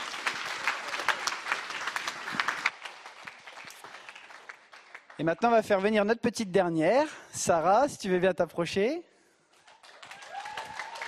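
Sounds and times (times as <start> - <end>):
audience applause: 0.0 - 5.4, 9.6 - 11.0
speech: 5.2 - 9.1.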